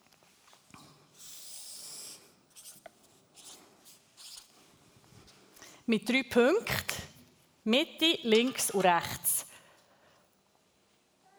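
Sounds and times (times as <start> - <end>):
marker strokes across flipchart paper: 1.2 - 4.6
speech: 5.9 - 6.9, 7.6 - 9.4.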